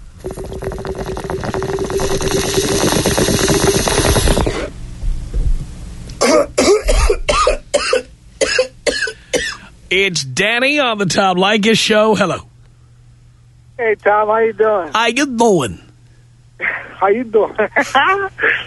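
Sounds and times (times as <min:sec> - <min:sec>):
bong hit bubbling and gurgling: 0:00.0 - 0:04.8
person coughing harshly: 0:06.2 - 0:09.7
speech: 0:09.9 - 0:12.5, 0:13.8 - 0:15.8, 0:17.0 - 0:18.6.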